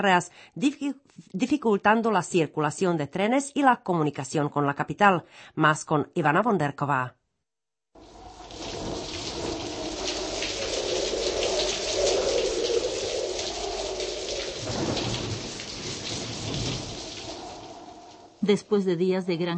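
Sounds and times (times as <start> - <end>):
speech: 0.0 - 7.2, 18.4 - 19.5
heavy rain: 8.0 - 18.4
thunder rumbling: 8.0 - 18.7.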